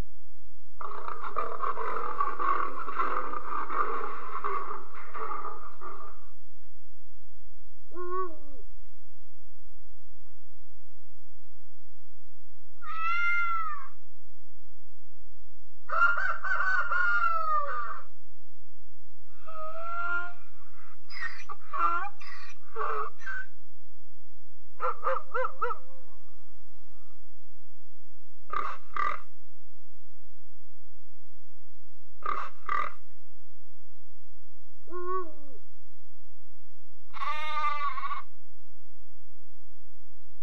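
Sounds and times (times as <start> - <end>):
animals: 0.8 - 6.4, 12.8 - 14.0, 15.9 - 18.1, 19.3 - 23.6, 24.8 - 26.4, 28.5 - 29.3, 32.2 - 33.0, 34.9 - 35.6, 37.1 - 38.4
voices: 0.8 - 6.4, 19.4 - 23.5.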